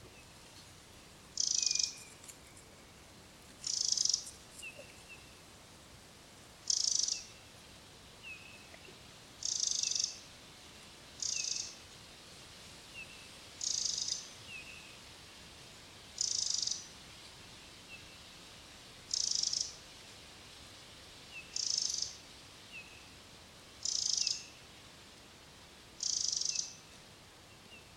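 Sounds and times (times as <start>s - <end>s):
steady background hiss: 0.0s - 27.9s
Eurasian wren rattling calls: 1.4s - 2.2s, 3.6s - 4.3s, 6.7s - 7.2s, 9.4s - 10.2s, 11.2s - 11.7s, 13.6s - 14.2s, 16.2s - 16.8s, 19.1s - 19.7s, 21.6s - 22.2s, 23.8s - 24.4s, 26.0s - 26.8s.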